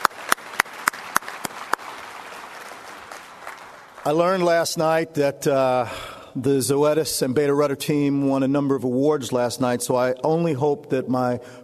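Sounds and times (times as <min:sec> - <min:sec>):
hand claps: 0:00.0 - 0:04.2
hiss: 0:00.1 - 0:11.6
speech: 0:04.0 - 0:11.6.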